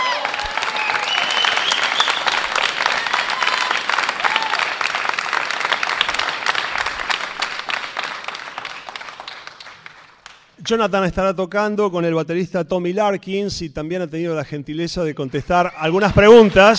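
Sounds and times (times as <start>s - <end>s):
audience applause: 0.0s - 10.4s
speech: 10.7s - 16.7s.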